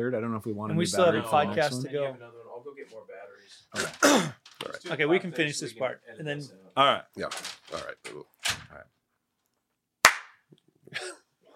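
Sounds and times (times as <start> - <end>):
speech: 0.0 - 9.0
loud hand clap: 10.0 - 10.5.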